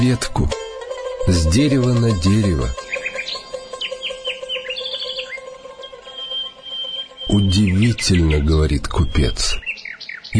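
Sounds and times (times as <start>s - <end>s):
speech: 0.0s - 0.6s, 1.2s - 3.4s, 7.3s - 9.7s
nightingale singing: 0.0s - 10.3s.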